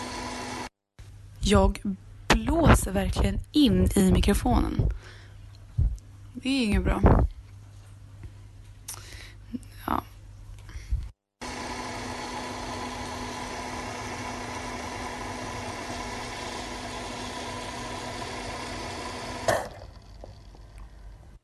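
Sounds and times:
speech: 1.5s - 5.2s, 6.4s - 7.3s, 9.8s - 10.1s
coffee machine brewing a cup: 11.4s - 21.4s.

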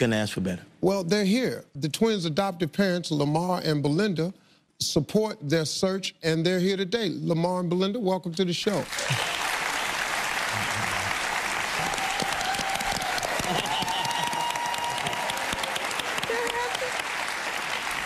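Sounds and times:
speech: 0.0s - 9.4s
audience applause: 8.8s - 18.0s.

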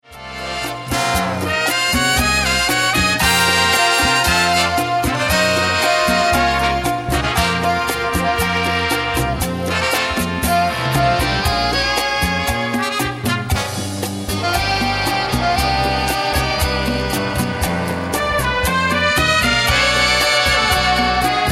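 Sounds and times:
city rhythm cha cha music: 0.0s - 21.5s.

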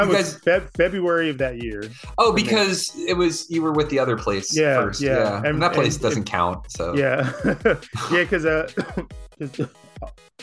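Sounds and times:
speech: 0.0s - 10.4s
laughter: 4.6s - 6.3s, 7.0s - 9.8s
man coughing: 7.0s - 10.0s.

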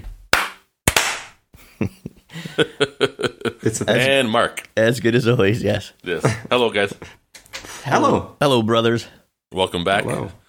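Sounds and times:
hands clapping: 0.3s - 1.4s
laughter: 1.6s - 4.1s
speech: 1.8s - 7.2s, 7.9s - 10.4s.

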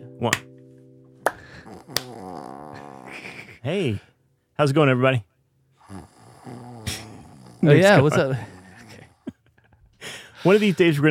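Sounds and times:
speech: 0.2s - 0.5s, 3.6s - 5.3s, 7.6s - 8.5s, 10.4s - 11.1s
clapping: 1.3s - 2.2s.

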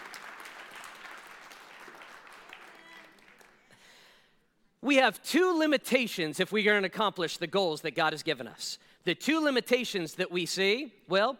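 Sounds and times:
crowd applauding: 0.0s - 3.9s
speech: 4.8s - 11.3s.

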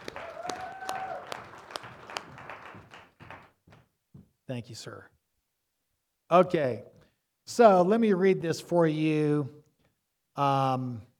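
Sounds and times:
round of applause: 0.0s - 3.9s
speech: 4.5s - 5.2s, 6.3s - 6.9s, 7.5s - 9.6s, 10.4s - 11.1s.

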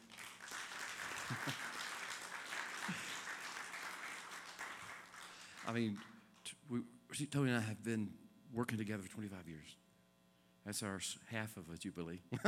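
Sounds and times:
audience applause welcoming a guest: 0.0s - 6.1s
speech: 1.3s - 1.7s, 5.7s - 6.1s, 6.7s - 9.8s, 10.6s - 12.4s.

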